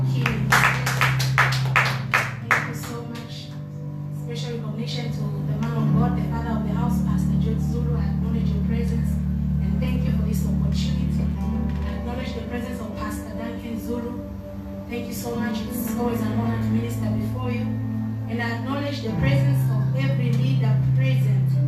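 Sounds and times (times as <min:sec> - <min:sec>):
audience clapping: 0:00.0 - 0:03.3
low sustained keyboard chord: 0:00.0 - 0:21.6.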